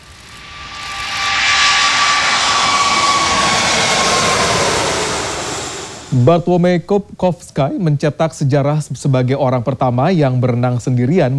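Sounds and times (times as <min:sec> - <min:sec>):
Airbus A380 jet airliner engines: 0:00.0 - 0:06.9
speech: 0:06.2 - 0:11.3.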